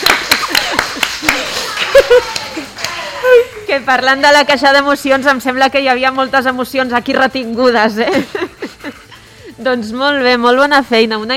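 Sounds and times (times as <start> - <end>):
few people clapping: 0.0 - 3.4
voices and laughter: 0.4 - 3.9, 7.8 - 9.7
speech: 3.7 - 8.5, 9.6 - 11.3.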